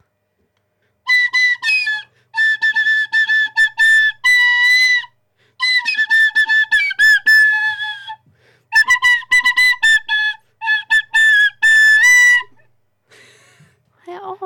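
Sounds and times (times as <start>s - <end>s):
recorder flute being played: 1.1s - 12.7s.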